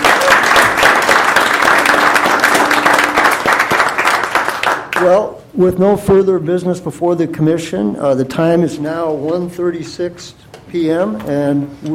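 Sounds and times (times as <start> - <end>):
crowd applause: 0.0 - 5.0
speech: 5.0 - 11.9.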